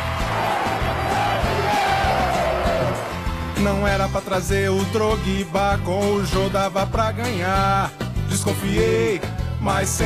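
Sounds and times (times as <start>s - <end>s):
stadium crowd chanting: 0.0s - 3.3s
speech: 3.6s - 10.0s.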